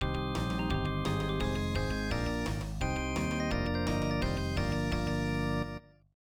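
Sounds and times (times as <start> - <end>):
Electone organ playing a folk dance tune: 0.0 - 6.0.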